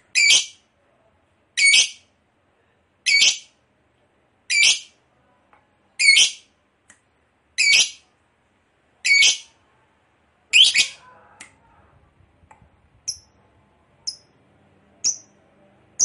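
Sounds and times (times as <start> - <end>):
lovebird chirps and long harsh chatter: 0.1 - 0.6, 1.6 - 2.0, 3.1 - 3.5, 4.5 - 5.0, 6.0 - 6.5, 7.6 - 8.0, 9.0 - 9.6, 10.5 - 11.0, 13.0 - 13.3, 14.0 - 14.3, 15.0 - 15.3.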